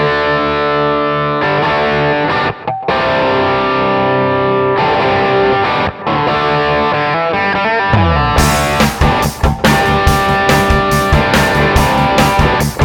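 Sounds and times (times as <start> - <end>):
crunch electric guitar through tube mic preamp, dry and wet: 0.0 - 12.8
band playing: 7.9 - 12.8.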